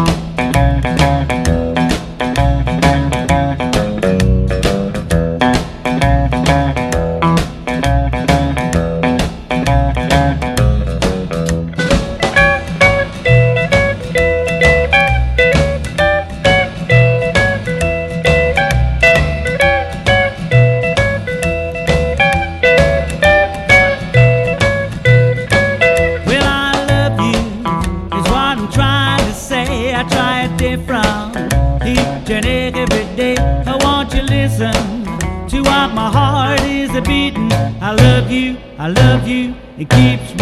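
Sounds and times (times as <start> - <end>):
rockabilly rock and roll music: 0.0 - 40.4.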